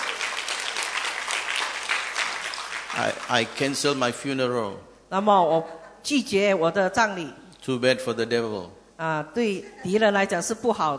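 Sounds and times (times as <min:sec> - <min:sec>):
audience applause: 0:00.0 - 0:04.0
speech: 0:03.0 - 0:10.9.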